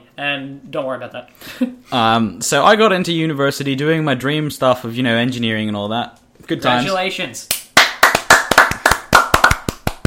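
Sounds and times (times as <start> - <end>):
speech: 0.2 - 7.6
hands clapping: 7.5 - 10.0.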